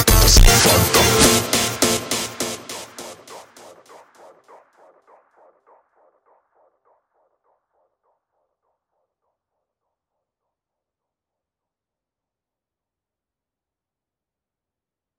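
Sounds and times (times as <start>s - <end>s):
slowed montagem funk music: 0.0s - 3.3s.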